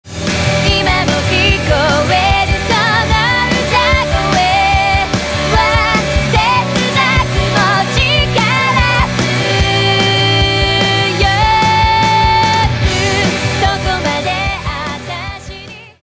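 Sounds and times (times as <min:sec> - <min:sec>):
song: 0:00.1 - 0:16.0.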